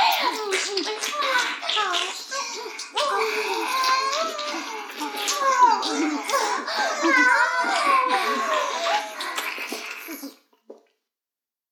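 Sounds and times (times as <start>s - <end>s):
ear licking: 0.0s - 11.0s
fellatio sounds: 0.0s - 11.1s
laughter: 3.0s - 10.3s.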